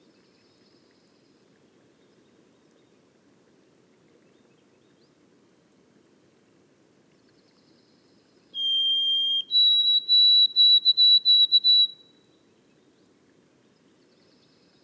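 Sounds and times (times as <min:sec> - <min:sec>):
White-throated sparrow whistled song in boreal forest: 0:08.6 - 0:12.1.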